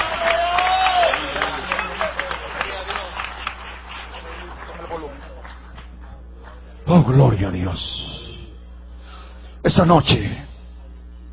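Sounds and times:
cheering voices: 0:00.0 - 0:03.1
crowd applause with cheering voices: 0:00.0 - 0:06.6
speech: 0:07.0 - 0:07.9, 0:09.7 - 0:10.4.

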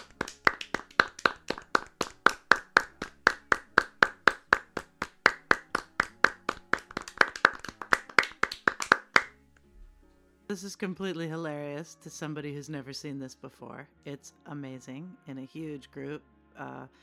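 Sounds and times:
large crowd clapping in unison: 0:00.0 - 0:09.3
speech: 0:10.5 - 0:17.0.

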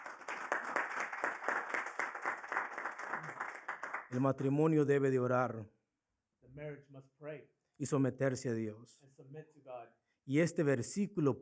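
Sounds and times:
crowd clapping hands in a rhythmic beat: 0:00.0 - 0:04.4
speech: 0:04.1 - 0:05.8, 0:06.6 - 0:11.3.

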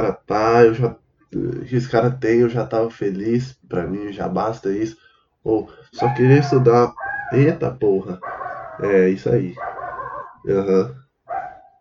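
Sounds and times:
speech-like sounds: 0:00.0 - 0:09.6, 0:10.4 - 0:11.0
dog barking: 0:06.0 - 0:07.4, 0:08.2 - 0:10.5, 0:11.3 - 0:11.7.

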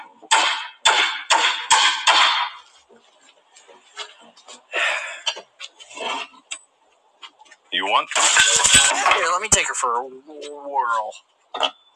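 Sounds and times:
hammer hitting a nail: 0:00.3 - 0:02.5
speech: 0:07.8 - 0:11.8.

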